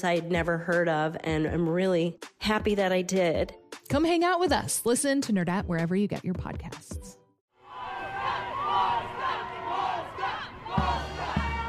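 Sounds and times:
speech: 0:00.0 - 0:07.2
parade crowd cheering and shouting outdoors: 0:07.6 - 0:11.6.

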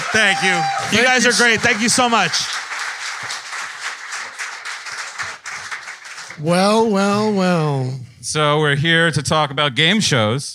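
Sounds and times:
audience applause for contestants: 0:00.0 - 0:06.6
speech: 0:00.1 - 0:02.6, 0:06.4 - 0:10.5.

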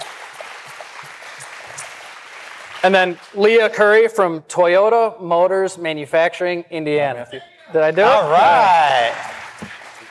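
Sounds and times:
crowd applauding: 0:00.0 - 0:03.8, 0:07.9 - 0:10.0
speech: 0:02.8 - 0:09.4.

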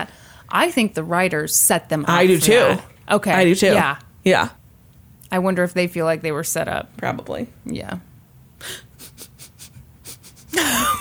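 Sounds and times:
speech: 0:00.0 - 0:04.6, 0:05.3 - 0:08.9
person sniffing: 0:08.6 - 0:10.6.

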